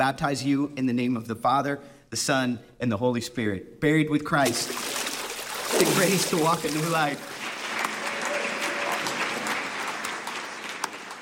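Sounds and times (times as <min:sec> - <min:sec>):
speech: 0:00.0 - 0:05.0, 0:05.7 - 0:07.3
audience applause after a baptism: 0:05.7 - 0:11.2.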